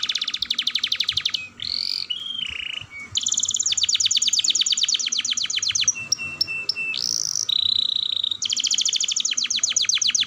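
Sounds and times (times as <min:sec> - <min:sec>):
canary singing long rolling trills: 0:00.0 - 0:10.2.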